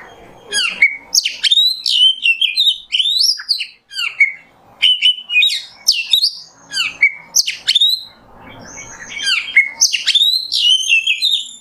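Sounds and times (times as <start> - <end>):
Oriental magpie-robin whistling: 0.4 - 11.5.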